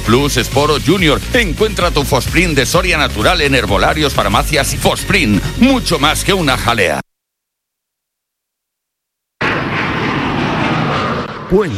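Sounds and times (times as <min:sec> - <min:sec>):
speech: 0:00.1 - 0:07.1, 0:11.5 - 0:11.7
jet airliner roaring on arrival at Barcelona's El Prat airport: 0:09.4 - 0:11.7.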